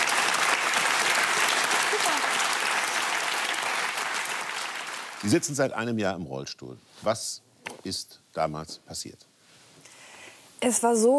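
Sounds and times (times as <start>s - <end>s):
audience applause: 0.0s - 5.6s
speech: 5.2s - 9.3s, 10.6s - 11.1s.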